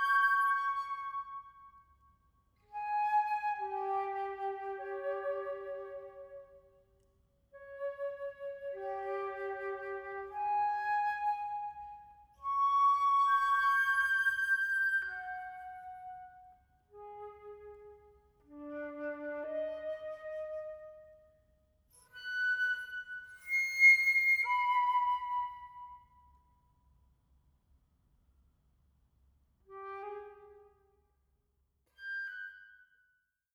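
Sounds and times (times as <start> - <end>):
two flutes playing a sonata andante: 0.0 - 1.7, 2.7 - 6.6, 7.6 - 21.2, 22.0 - 26.2, 29.7 - 30.8.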